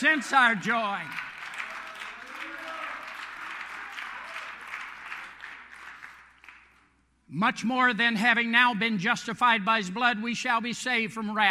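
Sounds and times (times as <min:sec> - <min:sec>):
speech: 0:00.0 - 0:01.3, 0:07.3 - 0:11.4
audience clapping: 0:00.0 - 0:07.0.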